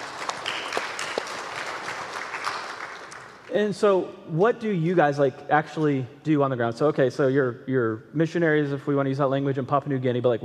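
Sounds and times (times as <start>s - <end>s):
audience clapping: 0.0s - 3.6s
speech: 3.5s - 10.4s.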